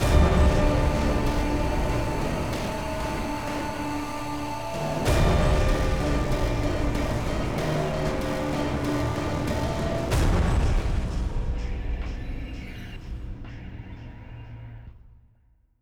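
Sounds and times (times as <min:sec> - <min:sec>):
95 bpm outro music: 0:00.0 - 0:12.0.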